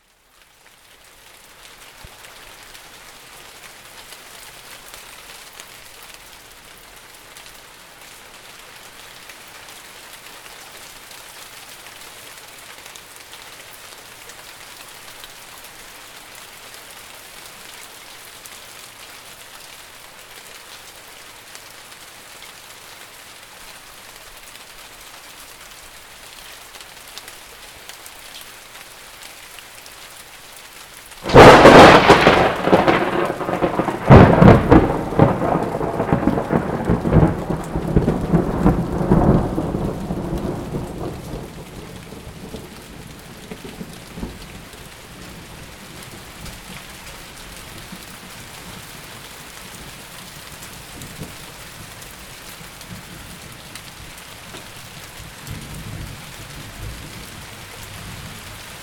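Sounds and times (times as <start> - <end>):
rain: 0.0 - 58.8
thunder: 31.2 - 42.5.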